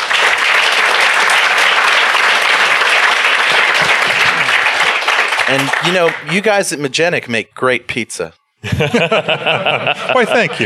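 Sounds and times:
audience applause: 0.0 - 6.7
laughter: 3.6 - 5.8, 8.6 - 10.6
speech: 5.5 - 10.6.

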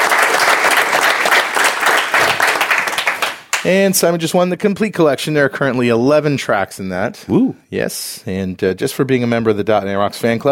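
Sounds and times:
crowd applause: 0.0 - 3.6
speech: 3.6 - 10.5.

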